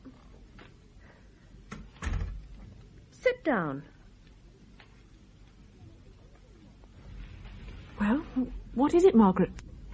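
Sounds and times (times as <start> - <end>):
door being pushed shut with thud: 1.7 - 2.5
speech: 3.4 - 4.0, 8.4 - 9.7
faint knocks and scrapes: 6.9 - 8.2.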